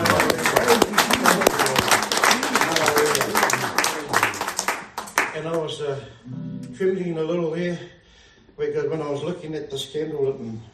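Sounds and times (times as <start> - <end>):
audience clapping: 0.0 - 5.7
speech: 5.7 - 8.0, 8.6 - 10.7.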